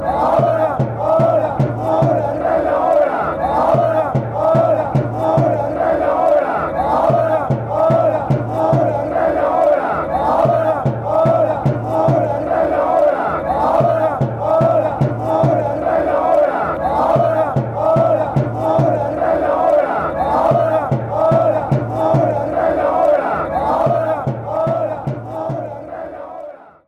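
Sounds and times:
chanting: 0.0 - 26.8.

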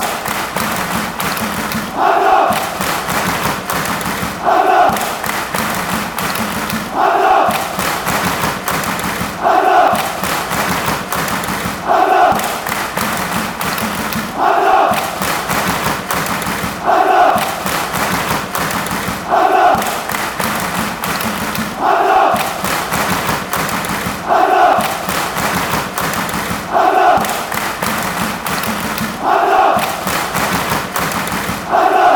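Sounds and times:
football fans chanting: 0.0 - 32.1.

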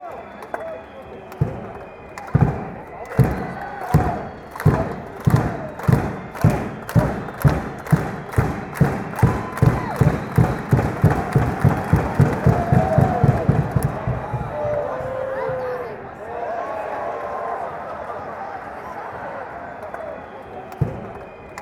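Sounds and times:
clapping: 0.0 - 15.4, 16.9 - 21.6
drumming: 1.3 - 15.8.

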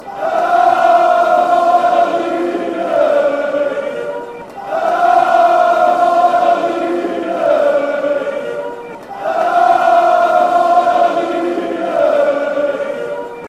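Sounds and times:
football crowd chanting: 0.0 - 13.4.

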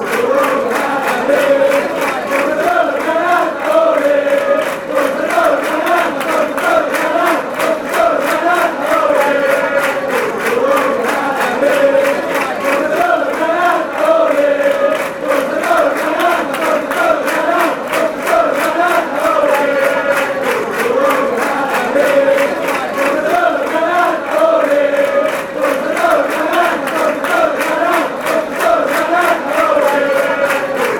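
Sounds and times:
football fans chanting: 0.0 - 30.9.

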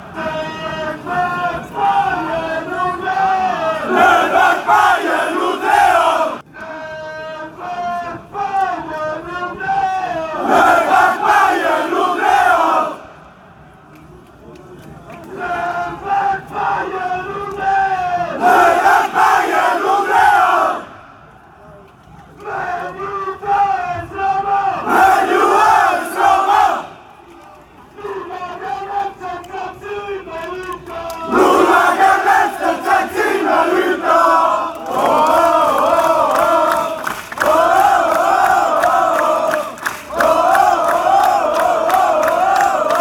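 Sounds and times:
people shouting la la la and ooh chants: 0.1 - 13.1, 15.3 - 21.1, 22.3 - 43.0.

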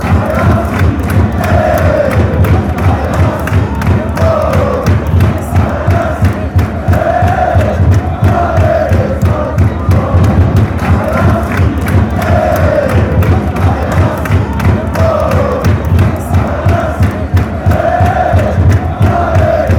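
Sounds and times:
fans chanting: 0.0 - 19.7.

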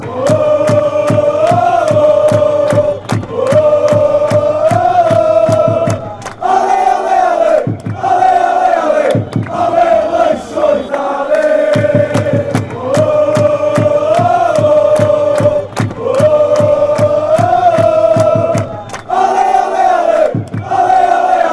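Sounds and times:
crowd chanting: 0.0 - 21.5.

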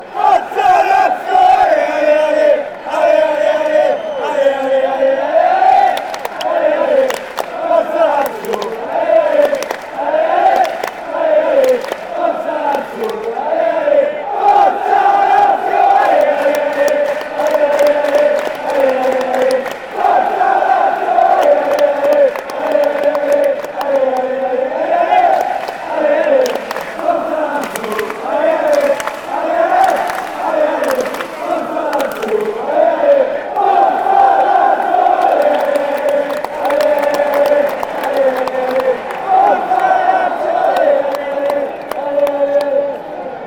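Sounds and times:
football crowd chanting: 0.0 - 43.4.

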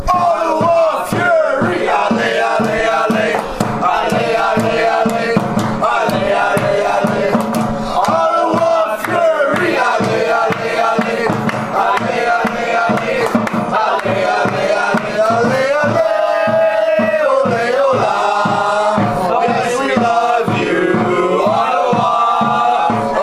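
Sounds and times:
fan chants: 0.0 - 23.2.

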